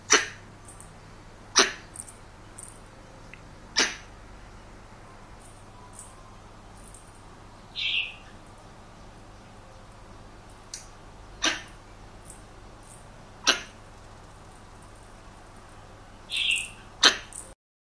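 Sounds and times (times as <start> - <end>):
young male squirrel giving rasping chuck calls: 0.0 - 0.9, 1.5 - 2.8, 3.6 - 4.3, 5.4 - 8.6, 9.6 - 17.6.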